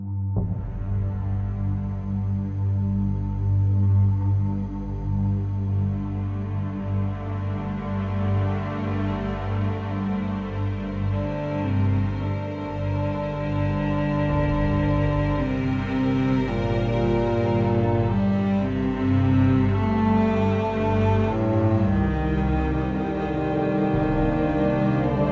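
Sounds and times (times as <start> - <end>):
emotional music loop: 0.2 - 25.2.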